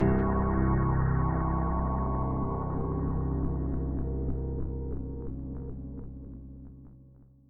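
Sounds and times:
dread music sting: 0.0s - 6.1s.

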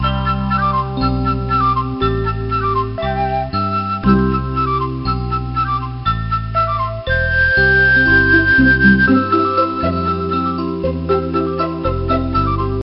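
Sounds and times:
Eskimo music: 0.0s - 12.8s.

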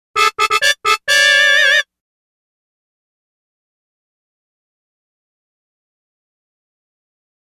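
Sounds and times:
party ball jingle: 0.2s - 1.8s.

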